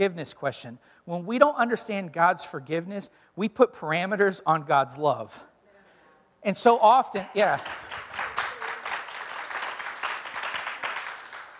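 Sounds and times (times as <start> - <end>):
speech: 0.0 - 5.5, 6.4 - 8.2
crowd clapping: 7.2 - 11.5.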